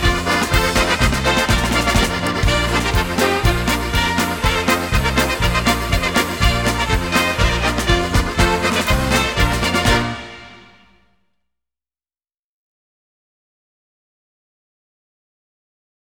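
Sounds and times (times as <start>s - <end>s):
polka music: 0.0s - 11.1s.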